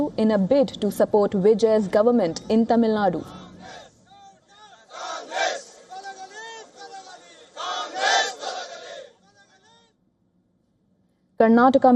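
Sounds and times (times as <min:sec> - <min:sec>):
speech: 0:00.1 - 0:03.8, 0:11.4 - 0:11.9
crowd of protesters shouting: 0:03.3 - 0:09.8.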